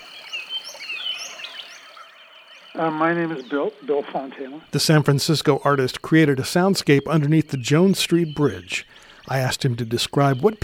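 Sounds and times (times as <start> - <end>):
indigenous wetland bird calls: 0.0 - 10.6
speech: 2.8 - 10.6.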